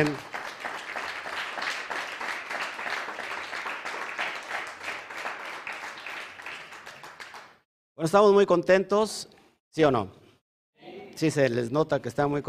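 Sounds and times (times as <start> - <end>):
speech: 0.0 - 0.3, 8.0 - 10.2, 11.2 - 12.4
audience applause: 0.0 - 7.6.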